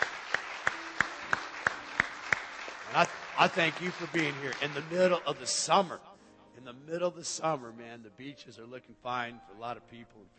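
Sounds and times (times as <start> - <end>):
rhythmic hand clapping from a church congregation welcoming first-time visitors: 0.0 - 5.8
speech: 2.9 - 10.3.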